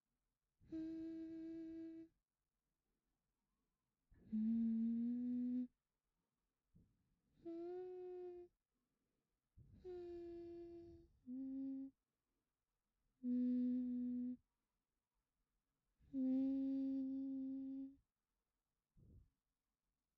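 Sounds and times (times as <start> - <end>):
person humming: 0.7 - 2.1, 4.2 - 5.7, 7.4 - 8.5, 9.8 - 12.0, 13.2 - 14.4, 16.1 - 18.0.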